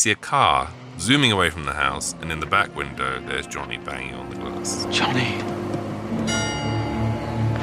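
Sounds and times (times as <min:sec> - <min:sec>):
speech: 0:00.0 - 0:05.6
steady low hum: 0:00.0 - 0:07.6
clock striking twelve with a bell-like chime: 0:06.2 - 0:07.1.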